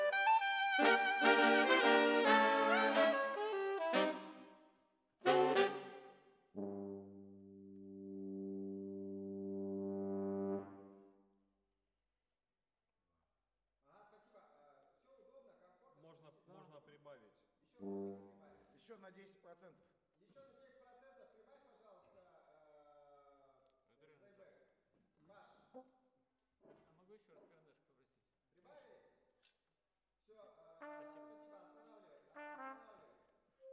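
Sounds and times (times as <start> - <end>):
brass instruments: 0.0 - 4.6, 5.2 - 7.4, 8.0 - 11.0, 17.8 - 18.5, 30.8 - 31.8, 32.4 - 33.2.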